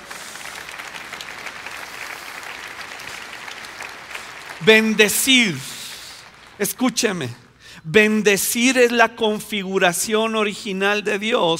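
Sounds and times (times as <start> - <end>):
crowd applauding: 0.0 - 7.3
speech: 4.6 - 5.7, 6.6 - 11.5.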